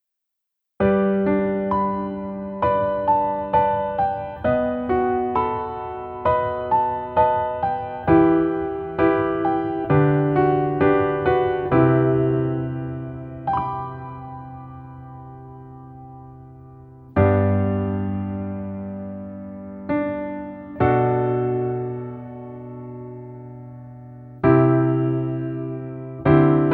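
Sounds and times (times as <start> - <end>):
piano piece in female key: 0.8 - 26.7.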